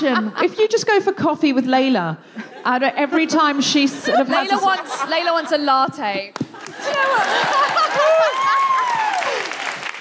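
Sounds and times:
laughter: 0.0 - 0.8, 2.4 - 9.5
speech: 0.0 - 8.6
audience round of applause: 6.4 - 9.9.

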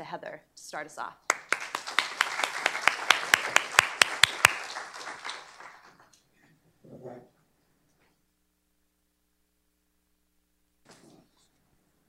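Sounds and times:
speech: 0.0 - 1.3
audience applause welcoming panelists at a panel discussion: 1.3 - 6.1.

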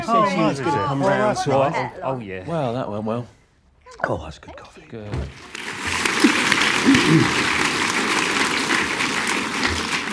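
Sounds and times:
speech: 0.1 - 5.5, 6.8 - 7.6
audience applause: 5.4 - 10.1.

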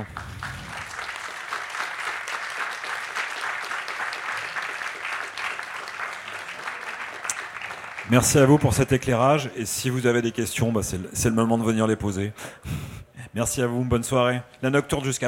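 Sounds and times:
audience applause: 0.0 - 9.1
speech: 8.1 - 12.8, 13.4 - 15.2.

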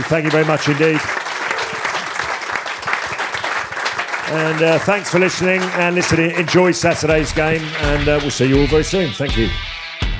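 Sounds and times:
audience applause: 0.0 - 8.9
speech: 0.1 - 1.2, 4.3 - 9.7.

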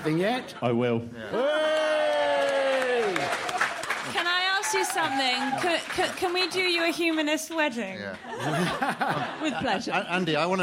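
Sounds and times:
speech: 0.0 - 1.7, 4.7 - 10.6
audience cheering: 1.3 - 6.7
dense scattered clapping: 2.3 - 7.3
laughter: 8.2 - 10.3.

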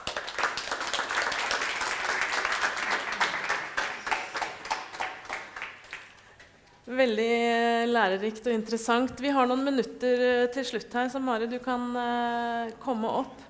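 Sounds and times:
audience applause: 0.0 - 6.3
speech: 7.0 - 13.4.

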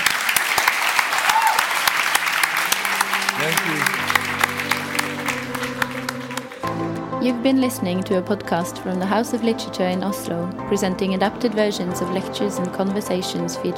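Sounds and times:
audience clapping: 0.0 - 7.0
speech: 3.4 - 4.0, 7.2 - 13.7.

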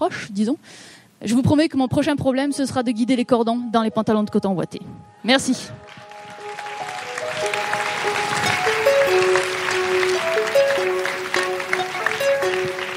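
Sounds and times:
speech: 0.0 - 6.1
audience applause: 5.8 - 12.9
simple melody of held musical notes: 6.4 - 12.9.

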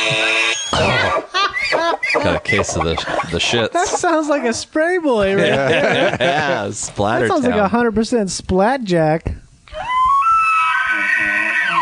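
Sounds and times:
elk bugle call: 0.0 - 4.6, 9.8 - 11.8
laughter: 1.3 - 4.1, 5.3 - 6.7
speech: 1.9 - 9.9.

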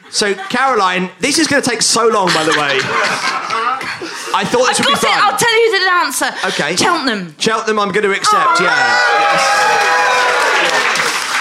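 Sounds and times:
laughter: 0.0 - 1.1, 1.8 - 5.6, 8.3 - 11.2
speech: 0.1 - 10.1
quiz audience applause: 8.6 - 11.4.

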